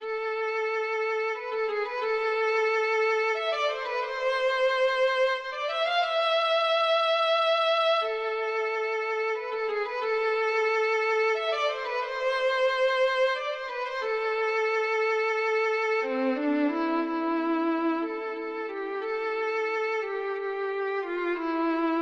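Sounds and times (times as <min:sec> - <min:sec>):
violin: 0:00.0 - 0:22.0.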